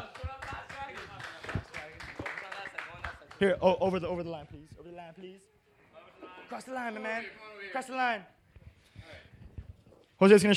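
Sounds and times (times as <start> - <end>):
crowd applauding: 0.0 - 3.4
speech: 3.4 - 5.6, 6.5 - 8.4, 10.2 - 10.5.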